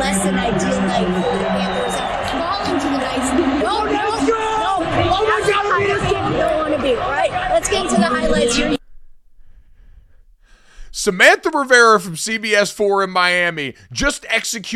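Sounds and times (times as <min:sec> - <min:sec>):
loud hockey arena crowd cheering: 0:00.0 - 0:08.8
speech: 0:06.3 - 0:08.8, 0:11.0 - 0:14.7.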